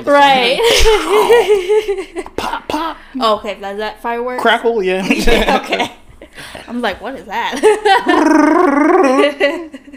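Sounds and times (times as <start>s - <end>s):
speech: 0.0s - 9.9s
voice imitating a growling alien creature: 8.1s - 9.2s.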